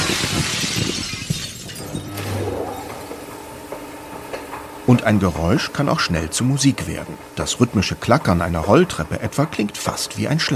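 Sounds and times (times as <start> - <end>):
glass pane shattering: 0.0 - 3.3
speech: 5.0 - 10.5.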